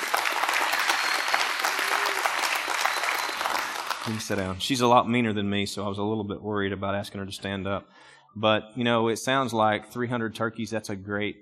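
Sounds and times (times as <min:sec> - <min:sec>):
audience applause: 0:00.0 - 0:04.7
speech: 0:04.1 - 0:11.4.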